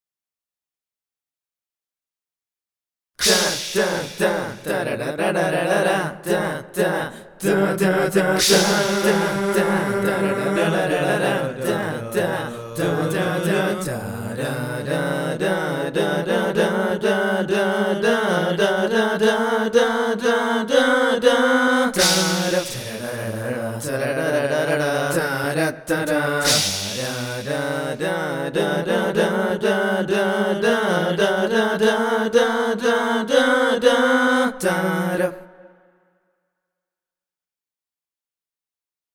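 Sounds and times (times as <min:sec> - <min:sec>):
a cappella singing: 0:03.2 - 0:36.0.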